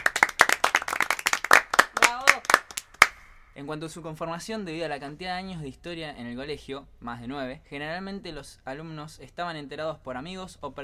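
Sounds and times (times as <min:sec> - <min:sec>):
audience applause: 0:00.0 - 0:03.1
speech: 0:03.6 - 0:10.8.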